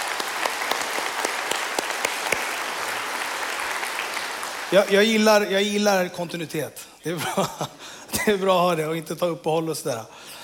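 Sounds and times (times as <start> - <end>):
audience applause: 0.0 - 5.5
speech: 4.7 - 10.4.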